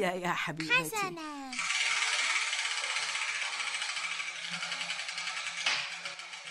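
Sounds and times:
speech: 0.0 - 1.7
spinning wheel rattling with rapid clicks: 1.5 - 6.5.

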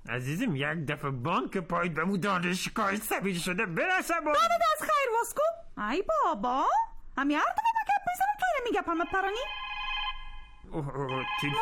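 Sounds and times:
speech: 0.1 - 7.7, 8.6 - 9.6, 10.7 - 11.6
telephone ringing with a short electronic tone: 8.7 - 11.6.

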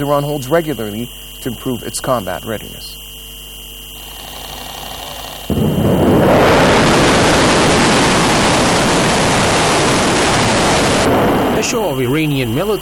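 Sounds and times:
speech: 0.0 - 3.0, 11.7 - 12.8
ballistic missiles launching: 5.5 - 11.9.

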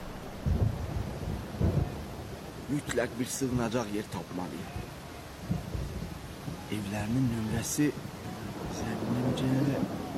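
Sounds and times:
low rumbling swells: 0.0 - 2.0
rain falling: 0.0 - 10.1
speech: 2.7 - 5.0, 6.7 - 8.0, 9.3 - 10.0.

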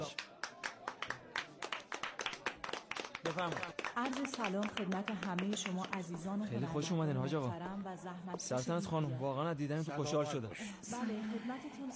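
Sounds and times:
festival audience clapping to welcome the festival secretary: 0.0 - 6.3
speech: 3.3 - 11.9.

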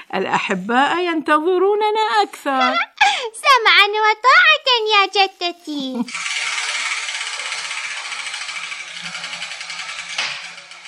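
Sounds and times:
speech: 0.1 - 2.9, 3.6 - 6.4
letter wheel spinning with balls tumbling inside: 6.0 - 10.8.

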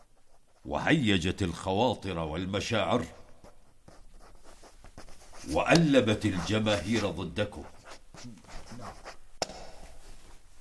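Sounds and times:
pen scratching on paper as a scribe takes down dictation: 0.0 - 0.8, 3.0 - 9.2
speech: 0.6 - 3.2, 5.4 - 9.2.

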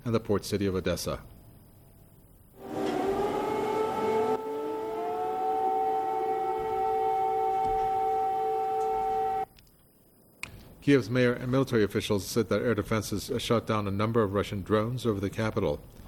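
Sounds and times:
speech: 0.0 - 1.4, 10.8 - 16.0
air raid siren wailing: 2.6 - 9.5.

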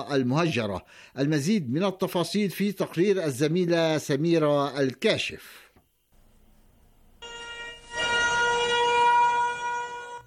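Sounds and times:
speech: 0.0 - 5.6
commemorative warning sirens wailing: 7.2 - 10.2.

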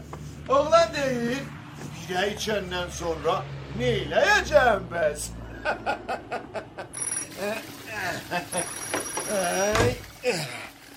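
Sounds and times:
speech: 0.5 - 6.1
laughter: 5.4 - 9.5
telephone ringing with a high thin electronic tone: 7.0 - 7.4, 8.6 - 9.6.

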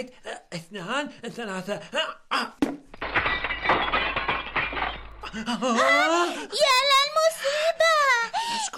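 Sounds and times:
speech: 0.0 - 2.8, 5.3 - 7.9
window glass shattering: 2.8 - 5.6.

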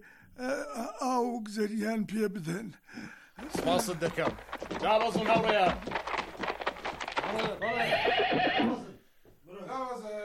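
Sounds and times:
speech: 0.4 - 0.8, 1.4 - 6.0, 7.3 - 8.9
horses' hooves clopping in a courtyard: 3.3 - 8.8
horse neighing in a courtyard: 7.4 - 9.0.

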